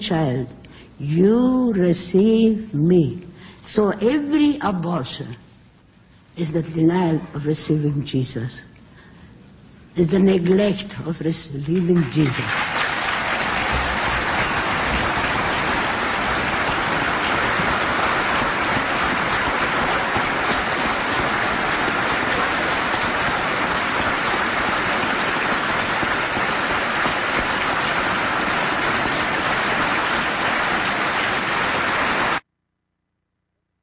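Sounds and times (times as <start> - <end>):
speech: 0.0 - 5.4, 6.4 - 8.7, 10.0 - 12.8
audience applauding in played recording: 12.0 - 32.4.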